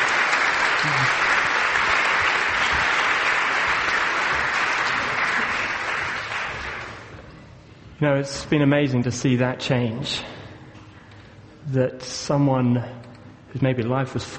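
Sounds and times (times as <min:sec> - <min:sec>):
audience applause: 0:00.0 - 0:07.2
speech: 0:08.0 - 0:10.4, 0:11.7 - 0:14.3.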